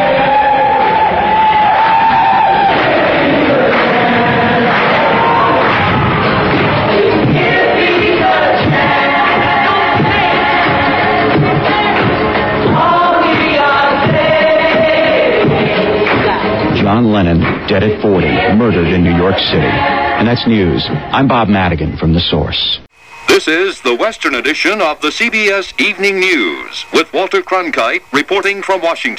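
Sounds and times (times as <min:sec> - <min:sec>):
large crowd chanting in unison: 0:00.0 - 0:16.8, 0:17.7 - 0:21.2
speech: 0:17.7 - 0:29.1.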